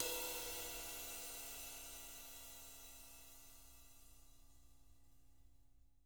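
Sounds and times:
ride cymbal: 0.0s - 4.3s.

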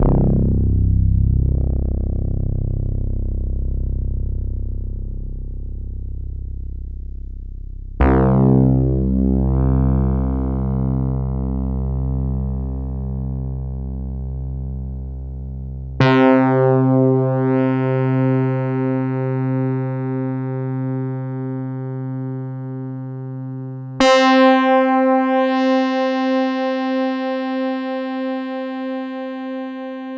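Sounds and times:
CZ-1 electric bass: 0.0s - 30.1s.

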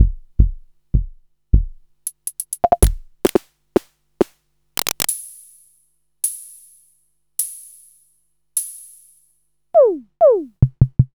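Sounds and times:
Electro-Harmonix DRM-32 drum machine: 0.0s - 5.2s, 9.8s - 11.1s.

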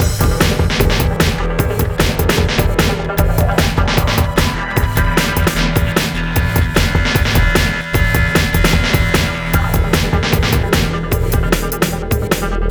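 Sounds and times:
hardcore breakbeat rhythm in E-flat minor: 0.0s - 12.6s.

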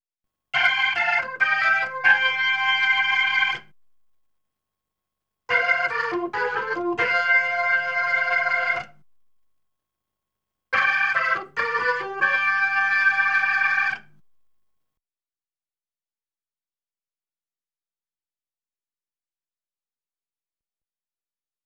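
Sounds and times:
Hammond B3 organ: 0.6s - 3.7s, 5.5s - 8.9s, 10.8s - 14.2s.

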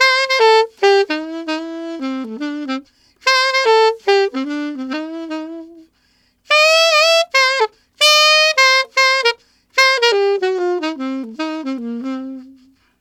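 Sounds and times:
alto saxophone shuffle: 0.0s - 12.9s.

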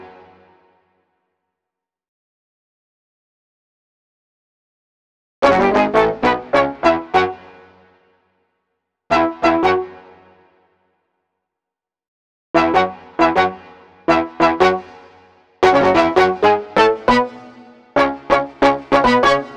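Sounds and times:
synthetic horns: 5.4s - 7.4s, 12.6s - 14.8s, 15.6s - 19.5s.

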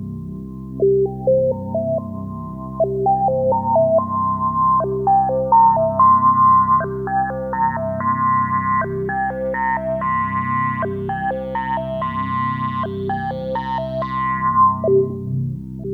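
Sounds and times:
keyboard arpeggio: 0.9s - 15.3s.

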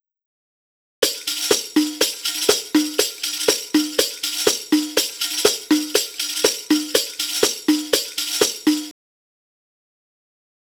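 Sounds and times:
Arabic rhythm percussion: 1.0s - 8.9s.

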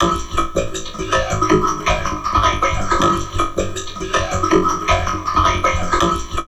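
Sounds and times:
heavily processed drum loops: 0.0s - 6.4s
vocoder voice: 0.0s - 6.4s.

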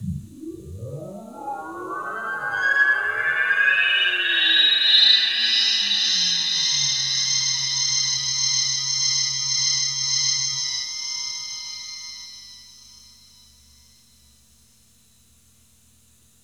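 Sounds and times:
DREAMFILTER keys synth: 0.0s - 11.9s.

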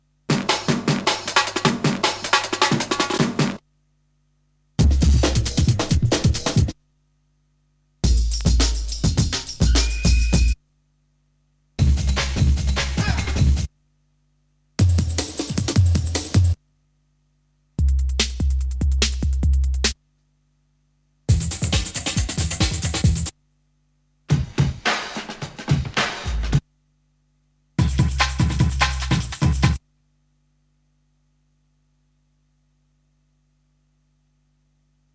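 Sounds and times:
breakbeat drums: 0.3s - 3.6s, 4.8s - 6.8s, 8.0s - 10.6s, 11.8s - 13.7s, 14.8s - 16.6s, 17.8s - 20.0s, 21.3s - 23.4s, 24.3s - 26.6s, 27.8s - 29.8s.

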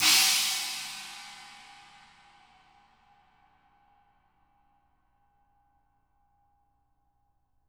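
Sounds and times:
china crash cymbal: 0.0s - 2.8s.

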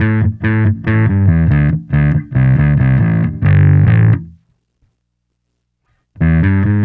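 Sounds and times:
bass: 0.0s - 4.5s, 6.2s - 6.8s.

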